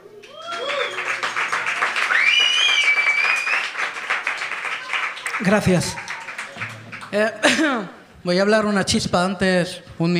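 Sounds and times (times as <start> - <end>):
audience applause: 0.2 - 7.6
speech: 5.4 - 6.1, 7.1 - 10.1.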